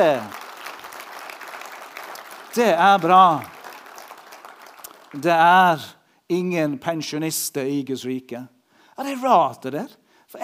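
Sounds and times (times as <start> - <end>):
speech: 0.0 - 0.4, 2.6 - 3.5, 5.1 - 10.4
applause for church volunteers: 0.0 - 5.4.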